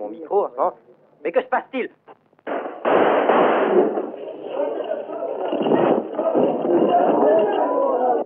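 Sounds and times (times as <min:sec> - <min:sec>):
speech: 0:00.3 - 0:02.1
revolver gunshots in a crowd: 0:02.4 - 0:04.4, 0:05.4 - 0:06.9
crowd shouting and murmuring: 0:03.7 - 0:08.2.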